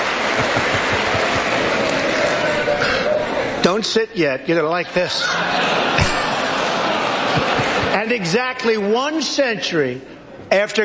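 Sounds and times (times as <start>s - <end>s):
applause in congressional chamber: 0.0s - 3.0s, 7.4s - 7.9s
laughter: 0.2s - 3.6s, 4.9s - 8.3s
speech: 3.7s - 6.2s, 8.0s - 10.8s.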